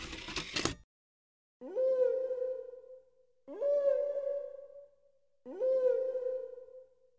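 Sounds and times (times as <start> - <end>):
whale song: 1.6 - 7.1.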